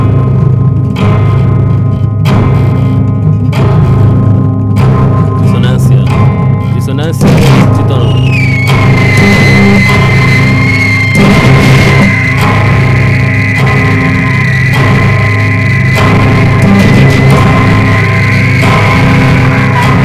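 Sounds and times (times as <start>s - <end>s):
dense dissonant tritone-based music improvisation with a tritone pulse: 0.0s - 20.0s
high whining line: 0.0s - 20.0s
regular accented hits: 0.0s - 20.0s.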